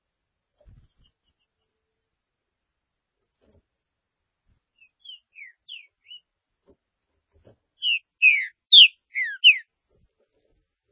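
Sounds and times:
Green-winged saltator song: 4.8 - 6.3, 7.8 - 9.7.

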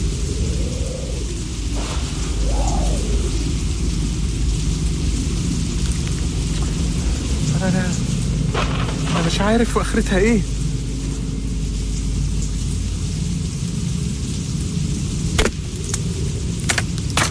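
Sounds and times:
tonal swells: 0.0 - 5.8
deep rolling thunder rumble: 0.0 - 17.2
steady heavy rain hissing: 0.0 - 17.2
speech: 9.4 - 10.6.

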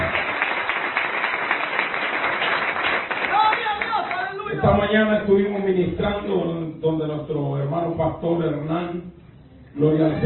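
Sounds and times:
crowd applauding at a Christian worship gathering: 0.0 - 4.6
speech: 4.6 - 9.2, 9.8 - 10.2.

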